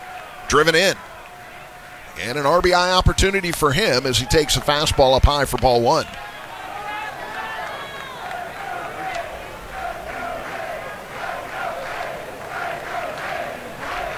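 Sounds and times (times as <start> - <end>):
ballpark crowd chanting Let's go: 0.0 - 3.1, 6.1 - 14.1
ballpark crowd murmur: 0.0 - 14.1
speech: 0.5 - 1.1, 2.2 - 6.3.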